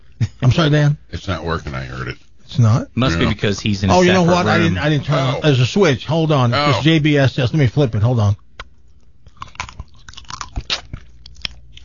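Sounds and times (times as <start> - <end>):
speech: 0.6 - 8.4
jawbreaker candy being bitten and chewed: 9.2 - 11.8.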